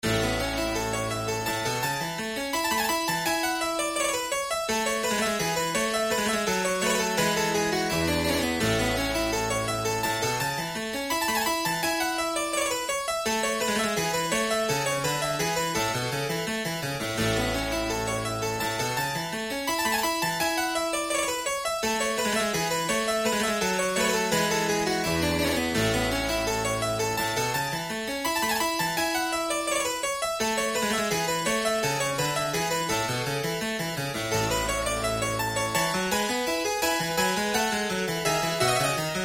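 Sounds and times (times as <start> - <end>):
harpsichord suite in A minor: 0.0 - 39.2.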